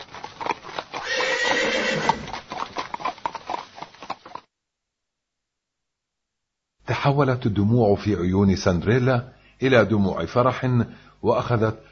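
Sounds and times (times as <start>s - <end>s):
horse-drawn carriage horses' hooves clip-clopping: 0.0s - 4.5s
horse whinnying: 0.9s - 2.4s
speech: 7.0s - 11.8s.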